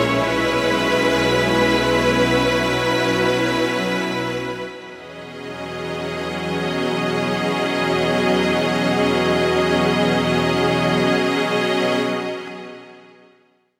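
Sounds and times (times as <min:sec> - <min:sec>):
slow string music: 0:00.0 - 0:13.6.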